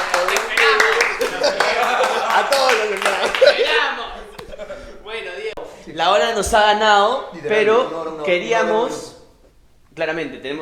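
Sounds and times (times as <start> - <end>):
applause: 0.0 - 3.7
laughter: 0.0 - 5.6
speech: 6.0 - 9.1, 10.0 - 10.6.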